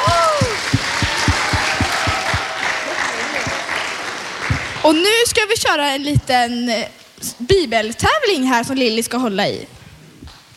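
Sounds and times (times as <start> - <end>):
applause for the confirmands: 0.0 - 5.0
speech: 4.8 - 9.8.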